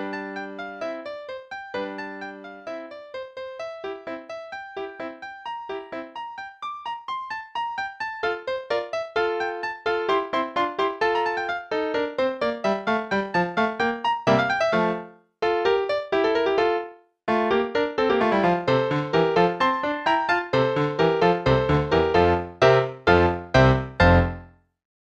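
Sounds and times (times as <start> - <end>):
play-along allegro in F major: 7.8 - 24.5.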